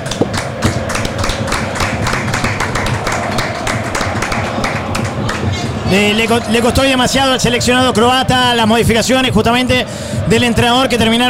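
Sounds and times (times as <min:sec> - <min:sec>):
applause: 0:00.0 - 0:08.0
speech: 0:05.9 - 0:11.2.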